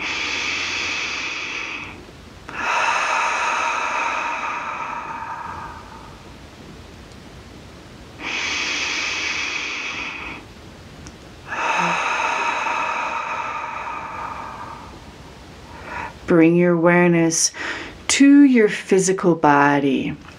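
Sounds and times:
deep breaths in through the nose and out through the mouth in guided meditation: 0.0 - 6.4, 8.2 - 10.6, 11.4 - 16.3, 17.5 - 18.0
speech: 16.3 - 20.3.

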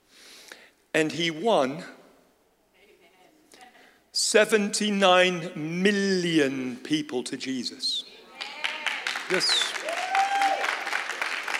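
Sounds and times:
speech: 1.0 - 2.0, 4.3 - 8.1, 9.3 - 9.6
audience clapping: 8.3 - 11.5.

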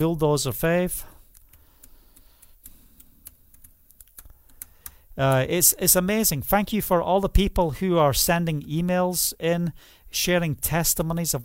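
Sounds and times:
speech: 0.0 - 1.1, 5.2 - 11.4
fast typing on a computer keyboard writing an email: 1.2 - 5.5.

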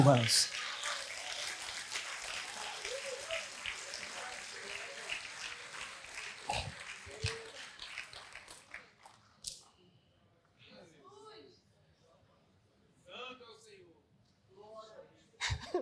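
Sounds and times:
speech: 0.0 - 0.7
audience applause: 0.0 - 9.2
laughter: 15.4 - 15.8.

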